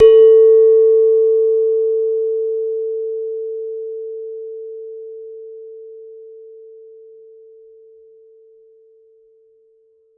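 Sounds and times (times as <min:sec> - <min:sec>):
gender gamelan metallophone: 0:00.0 - 0:01.6.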